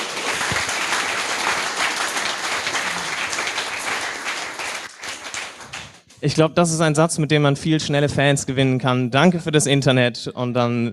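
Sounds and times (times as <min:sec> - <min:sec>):
audience applause: 0:00.0 - 0:06.1
speech: 0:06.2 - 0:10.9.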